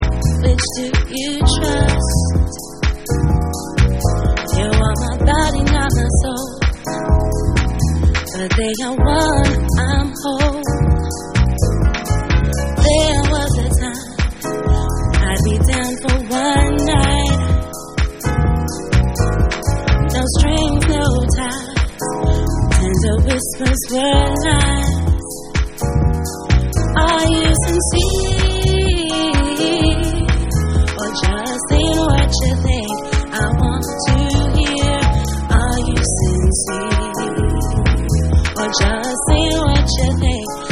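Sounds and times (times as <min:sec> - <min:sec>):
vocals: 0:00.0 - 0:40.7.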